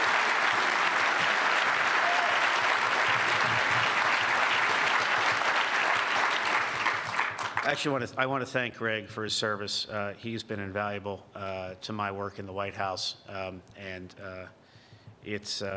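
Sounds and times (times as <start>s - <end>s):
audience applause: 0.0s - 7.9s
speech: 7.7s - 14.6s, 15.2s - 15.7s.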